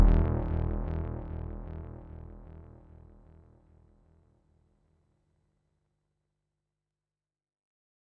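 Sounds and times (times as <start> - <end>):
Doepfer MS-404 synthesizer bass effects: 0.0 - 2.2.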